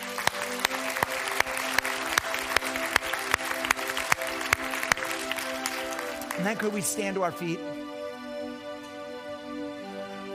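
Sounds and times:
crowd applauding: 0.0s - 7.6s
soft sustained musical chord: 0.0s - 10.3s
speech: 6.4s - 7.8s.

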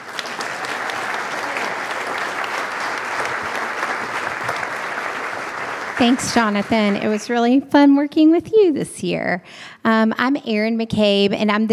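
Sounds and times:
crowd clapping: 0.0s - 7.6s
speech: 6.0s - 11.7s.

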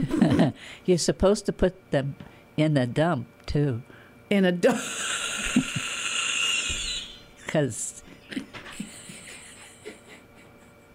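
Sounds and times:
speech: 0.0s - 5.9s, 7.5s - 8.6s
coughing: 4.6s - 7.5s
laughter: 8.6s - 10.8s.

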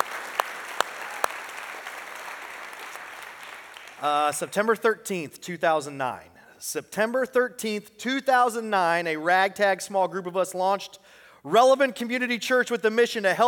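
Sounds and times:
church audience applauding: 0.0s - 4.3s
speech: 4.0s - 13.4s.

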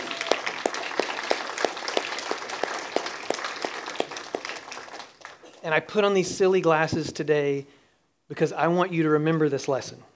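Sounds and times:
sharper rhythmic hand claps: 0.0s - 5.6s
room of people applauding: 0.0s - 5.7s
speech: 5.6s - 10.1s.

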